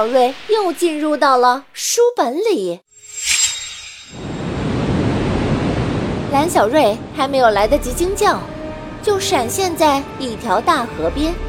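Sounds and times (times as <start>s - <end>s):
whoosh sound effect: 0.0s - 1.8s, 3.0s - 6.7s
speech: 0.0s - 3.3s, 6.3s - 11.4s.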